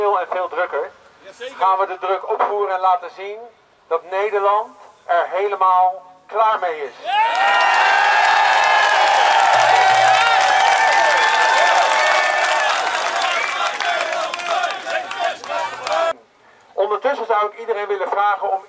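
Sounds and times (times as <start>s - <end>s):
speech: 0.2s - 7.7s, 17.4s - 18.6s
large protest crowd cheering and shouting: 7.0s - 16.1s
clapping: 7.2s - 16.1s.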